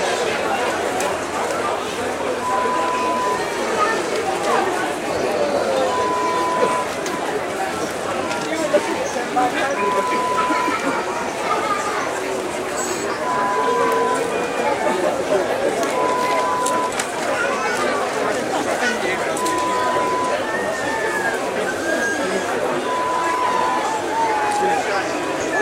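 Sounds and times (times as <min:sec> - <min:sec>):
craft fair crowd sounds: 0:00.0 - 0:25.6.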